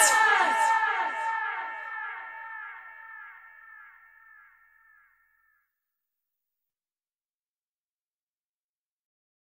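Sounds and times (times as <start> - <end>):
slowed reverb music: 0.0 - 4.9.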